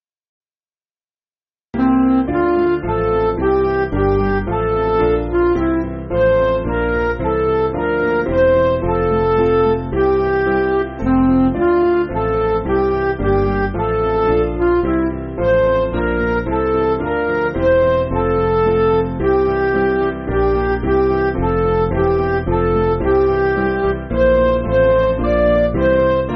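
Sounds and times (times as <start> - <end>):
MIDI music: 1.8 - 26.3.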